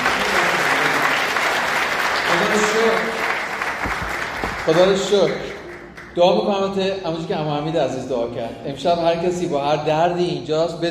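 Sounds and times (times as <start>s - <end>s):
church congregation applauding in praise of God: 0.0s - 6.5s
speech: 4.7s - 5.5s, 6.2s - 10.8s.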